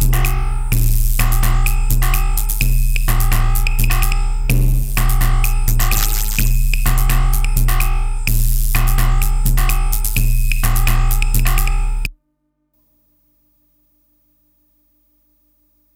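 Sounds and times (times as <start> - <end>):
synth beats: 0.0 - 12.1.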